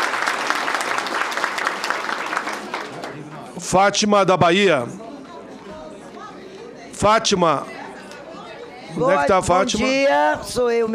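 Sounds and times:
audience applause: 0.0 - 3.5
speech: 3.7 - 5.0, 7.0 - 7.8, 8.9 - 10.9.

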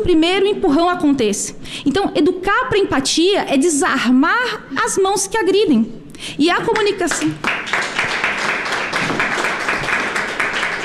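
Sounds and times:
speech: 0.0 - 7.9
audience applause: 7.4 - 10.8.

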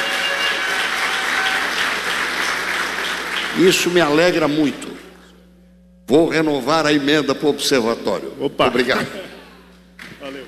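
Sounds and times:
round of applause: 0.0 - 4.3, 10.0 - 10.4
speech: 3.6 - 5.0, 6.1 - 9.4.

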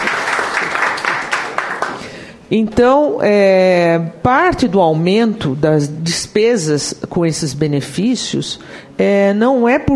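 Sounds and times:
audience applause at a Portuguese-language talk: 0.0 - 2.0
speech: 2.5 - 9.9.

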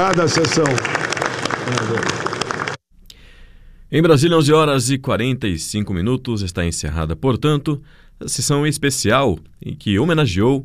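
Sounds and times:
speech: 0.0 - 2.3, 3.9 - 10.6
applause for guests at a special session of the Brazilian Senate: 0.0 - 2.8.

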